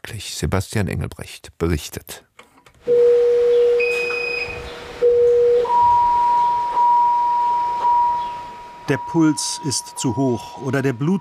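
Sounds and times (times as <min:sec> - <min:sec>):
speech: 0:00.2 - 0:03.1, 0:08.9 - 0:11.1
fainter higher beeps: 0:02.9 - 0:11.1
patient monitor alarm tone in intensive care: 0:02.9 - 0:11.1.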